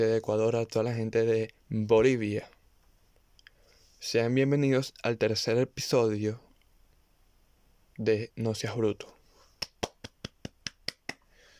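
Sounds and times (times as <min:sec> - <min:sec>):
speech: 0:00.0 - 0:02.6, 0:04.0 - 0:06.4, 0:08.0 - 0:09.2
hand clapping applause: 0:09.6 - 0:11.3.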